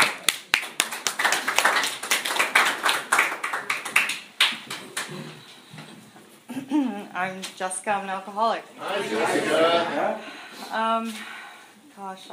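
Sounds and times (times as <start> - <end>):
audience clapping to welcome a speaker at an evening talk: 0.0 - 5.4
speech: 7.2 - 11.3, 12.0 - 12.3.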